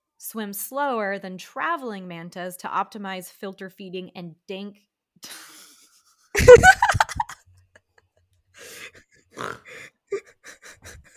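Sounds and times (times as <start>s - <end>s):
speech: 0.2s - 5.4s
laughter: 6.4s - 7.4s
person snorting: 8.6s - 11.1s.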